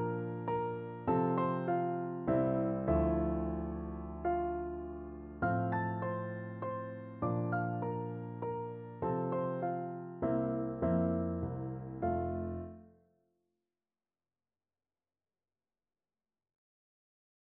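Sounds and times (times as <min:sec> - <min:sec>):
piano duet playing a minuet: 0:00.0 - 0:12.8.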